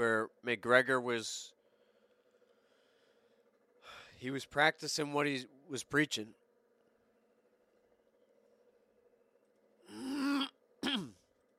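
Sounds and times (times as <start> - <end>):
speech: 0.0 - 1.6, 4.2 - 6.4
throat clearing: 9.9 - 11.3.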